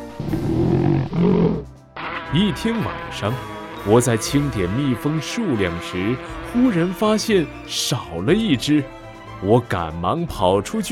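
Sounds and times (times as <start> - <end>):
bears roaring while fighting: 0.0 - 1.8
speech: 2.3 - 10.9.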